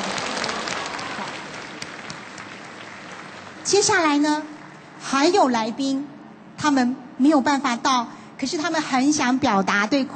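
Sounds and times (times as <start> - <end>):
audience applause: 0.0 - 3.7
speech: 3.7 - 10.1.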